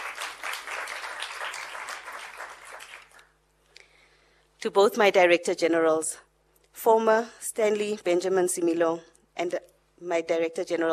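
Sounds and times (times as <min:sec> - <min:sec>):
round of applause: 0:00.0 - 0:03.3
speech: 0:04.6 - 0:10.9.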